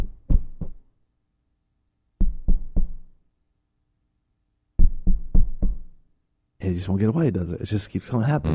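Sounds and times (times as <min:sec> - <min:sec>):
knocking on a door: 0:00.0 - 0:00.8, 0:02.2 - 0:03.0, 0:04.8 - 0:05.9
speech: 0:06.7 - 0:08.5.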